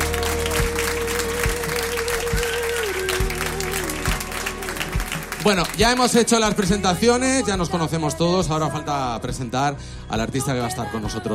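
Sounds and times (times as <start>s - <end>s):
audience applause: 0.0s - 7.0s
speech: 5.4s - 11.3s.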